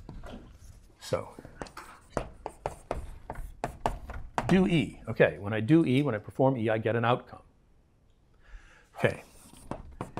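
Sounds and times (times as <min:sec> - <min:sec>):
writing on a board: 0:00.2 - 0:04.8, 0:09.1 - 0:10.1
speech: 0:01.1 - 0:01.5, 0:04.5 - 0:07.4, 0:09.0 - 0:09.3.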